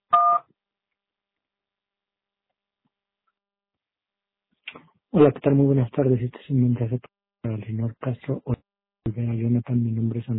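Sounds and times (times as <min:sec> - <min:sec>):
voicemail recording beep: 0:00.1 - 0:00.4
speech: 0:04.7 - 0:10.3.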